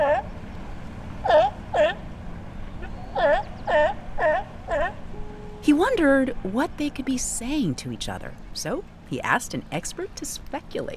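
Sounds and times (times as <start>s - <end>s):
sea lions barking: 0.0s - 0.4s, 1.1s - 2.1s, 2.8s - 5.2s
speech: 6.0s - 10.9s.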